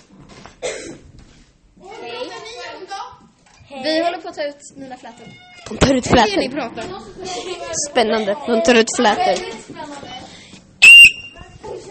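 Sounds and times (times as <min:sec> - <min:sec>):
speech: 0:03.8 - 0:10.2
smoke alarm beeping: 0:10.8 - 0:11.4.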